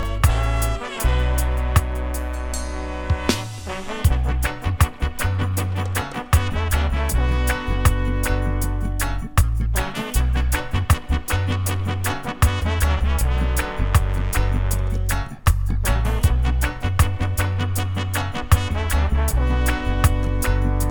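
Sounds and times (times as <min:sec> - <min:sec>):
horns: 0:00.0 - 0:20.8.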